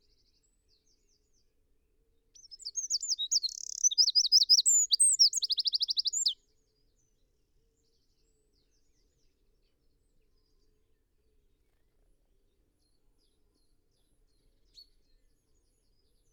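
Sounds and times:
Eurasian wren singing: 0:02.4 - 0:06.4.

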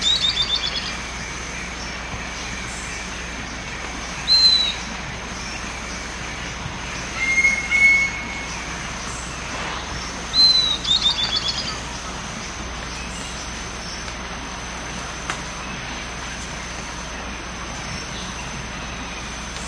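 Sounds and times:
bird whistles and trills: 0:00.0 - 0:12.0
constant hum of noise: 0:00.0 - 0:19.6.

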